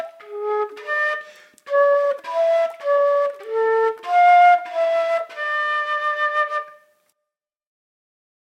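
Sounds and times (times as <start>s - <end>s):
flute: 0.0s - 7.2s.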